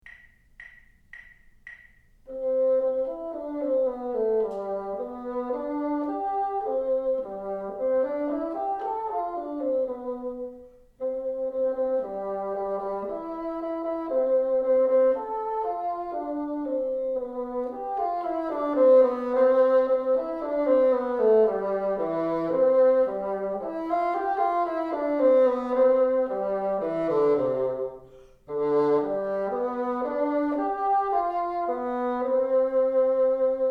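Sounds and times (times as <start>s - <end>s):
bassoon: 2.3s - 33.7s.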